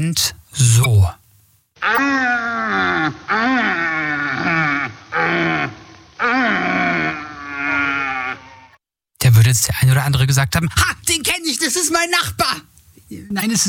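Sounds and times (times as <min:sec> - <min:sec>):
speech: 0:00.0 - 0:01.2, 0:01.8 - 0:03.6, 0:09.5 - 0:13.6
red deer stag roaring during mating season: 0:01.8 - 0:08.7.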